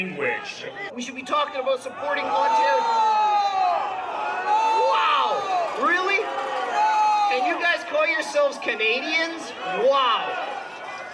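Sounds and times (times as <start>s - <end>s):
speech: 0.0s - 3.6s, 7.3s - 10.5s
crowd booing and jeering: 0.1s - 11.1s
overlapping shouts: 2.0s - 11.1s.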